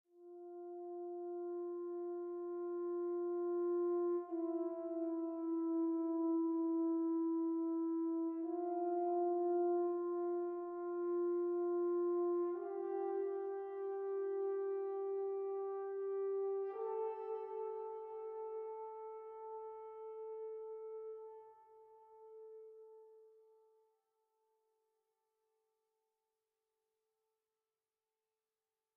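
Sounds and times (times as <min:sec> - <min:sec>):
horn playing at 58 bpm in 4-4 time: 0:00.4 - 0:22.1.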